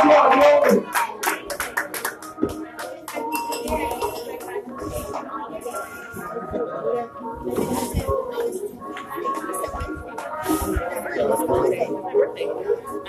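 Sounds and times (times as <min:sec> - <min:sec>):
audience clapping at a live event: 0:00.0 - 0:03.3
voices: 0:00.0 - 0:13.0
glasses or dishes clinking: 0:03.2 - 0:04.4.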